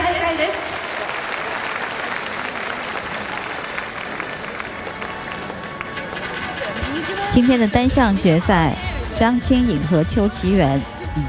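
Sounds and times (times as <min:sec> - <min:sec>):
audience applause in an arena: 0:00.2 - 0:07.3
speech: 0:07.4 - 0:11.2.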